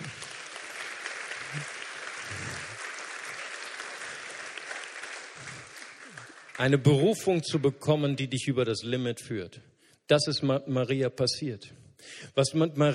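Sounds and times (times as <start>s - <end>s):
audience applause: 0.0s - 7.2s
speech: 1.5s - 1.7s, 6.6s - 12.9s.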